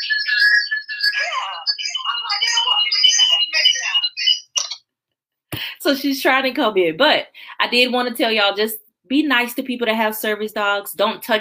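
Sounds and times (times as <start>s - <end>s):
phone ringtone: 0.0s - 4.6s
speech: 5.9s - 11.3s.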